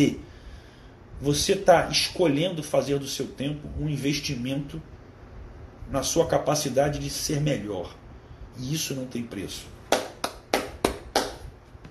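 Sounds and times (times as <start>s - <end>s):
speech: 0.0s - 0.2s, 1.2s - 4.9s, 5.9s - 8.0s, 8.6s - 9.8s
hands clapping: 9.9s - 11.5s.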